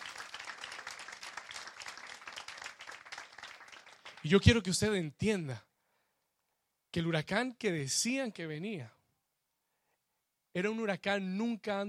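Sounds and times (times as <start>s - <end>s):
audience applauding loudly: 0.0s - 4.6s
speech: 4.2s - 5.7s, 6.9s - 9.0s, 10.6s - 11.8s.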